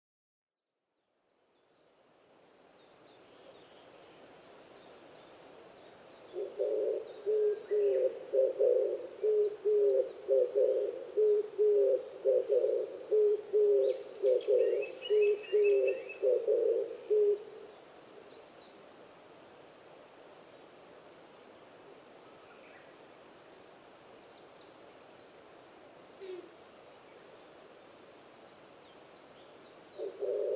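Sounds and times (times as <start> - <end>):
Oriental turtle dove cooing: 6.3 - 17.6, 26.2 - 26.6, 30.0 - 30.5.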